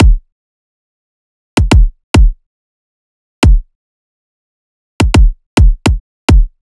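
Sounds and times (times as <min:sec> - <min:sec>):
riddim kick drum loop: 0:00.0 - 0:00.3, 0:01.6 - 0:02.4, 0:03.4 - 0:03.7, 0:05.0 - 0:06.6.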